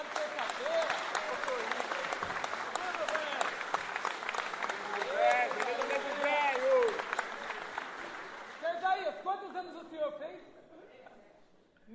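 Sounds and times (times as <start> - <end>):
audience applause: 0.0 - 9.2.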